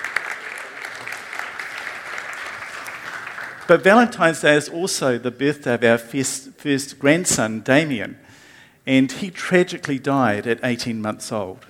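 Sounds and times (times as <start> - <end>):
group of people clapping: 0.0 - 4.4
speech: 3.7 - 11.6.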